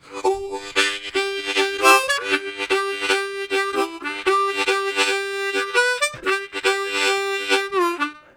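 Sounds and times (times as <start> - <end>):
chuggish harmonica: 0.0 - 8.3.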